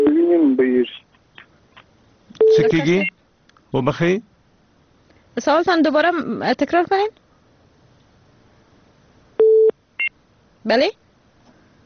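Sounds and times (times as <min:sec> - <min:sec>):
phone line busy tone after a disconnected call: 0:02.4 - 0:03.1, 0:09.4 - 0:10.1
speech: 0:02.6 - 0:04.3, 0:05.4 - 0:07.2, 0:10.6 - 0:11.0.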